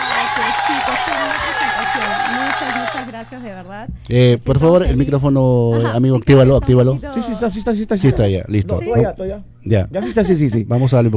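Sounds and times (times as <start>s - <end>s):
applause welcoming a studio guest: 0.0s - 4.3s
laughter: 0.0s - 4.4s, 8.5s - 11.1s
speech: 3.2s - 11.1s.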